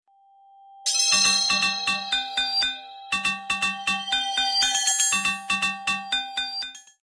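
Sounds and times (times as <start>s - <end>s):
weird bells: 0.8s - 7.0s.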